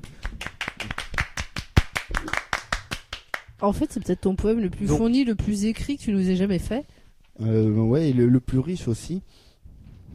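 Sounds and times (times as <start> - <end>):
applause, hands clapping: 0.0 - 3.5
speech: 3.6 - 9.5.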